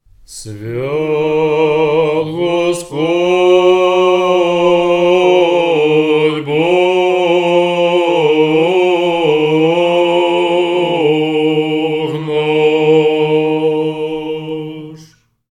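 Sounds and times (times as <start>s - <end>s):
chanted hymn in tone six: 0.2s - 15.3s.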